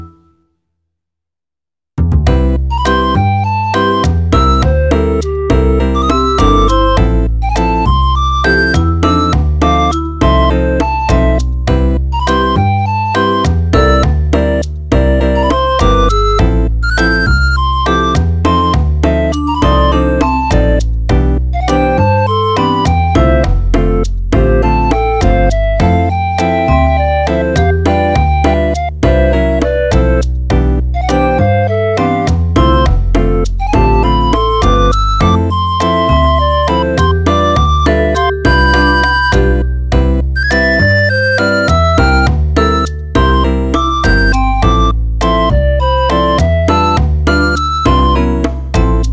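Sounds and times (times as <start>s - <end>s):
bossa nova music: 2.2s - 49.1s.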